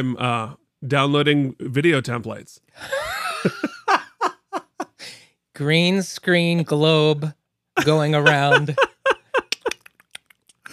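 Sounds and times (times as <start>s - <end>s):
speech: 0.0s - 3.7s, 5.0s - 8.9s
laughter: 2.8s - 4.9s, 7.8s - 9.7s
voice imitating keyboard typing with mouth clicks: 9.4s - 10.7s.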